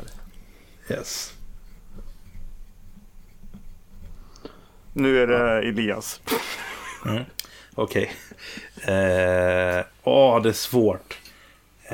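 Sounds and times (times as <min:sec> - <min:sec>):
speech: 0:00.9 - 0:01.4, 0:05.0 - 0:11.2
pen writing on paper: 0:01.6 - 0:04.2.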